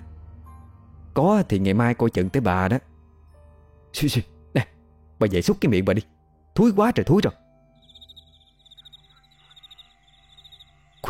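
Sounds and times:
speech: 0:01.2 - 0:02.9, 0:03.9 - 0:07.4
insects chirping in the fields at night: 0:07.7 - 0:11.0.

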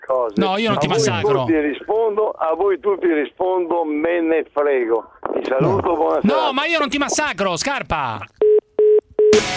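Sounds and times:
speech: 0:00.1 - 0:08.4
telephone line beeps after the caller hangs up: 0:08.4 - 0:09.4.

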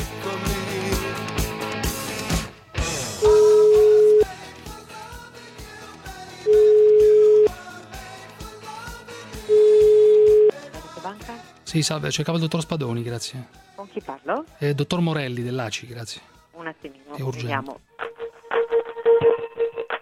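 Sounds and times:
rhythmic music: 0:00.0 - 0:20.0
telephone ringback tone of a call to a bank: 0:03.2 - 0:04.3, 0:06.5 - 0:07.5, 0:09.5 - 0:10.5
speech: 0:11.7 - 0:17.9.

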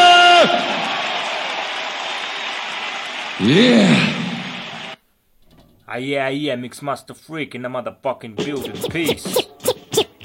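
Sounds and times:
audience applause: 0:00.0 - 0:05.0
speech: 0:03.4 - 0:04.2, 0:05.9 - 0:09.4.

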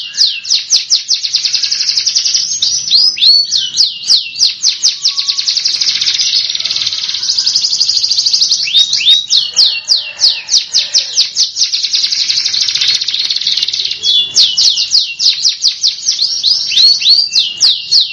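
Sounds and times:
Belgian canary singing trills and whistled notes: 0:00.0 - 0:18.1.

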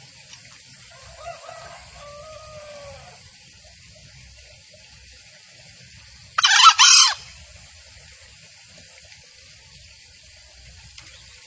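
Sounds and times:
junglefowl crowing: 0:00.9 - 0:03.2, 0:06.4 - 0:07.4.

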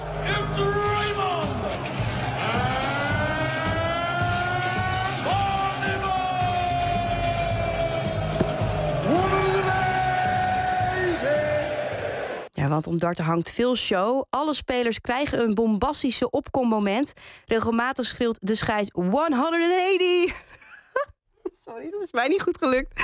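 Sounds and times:
darts crowd yelling and cheering: 0:00.0 - 0:12.5
speech: 0:12.8 - 0:21.1, 0:21.7 - 0:23.0.

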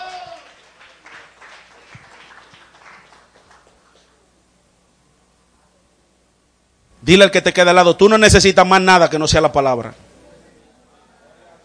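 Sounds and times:
faint applause from a church congregation during a service: 0:00.0 - 0:04.3
speech: 0:07.0 - 0:10.0.

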